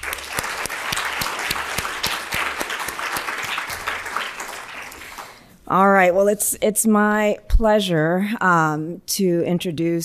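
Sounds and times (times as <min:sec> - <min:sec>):
audience applause: 0:00.0 - 0:05.4
speech: 0:05.7 - 0:10.0.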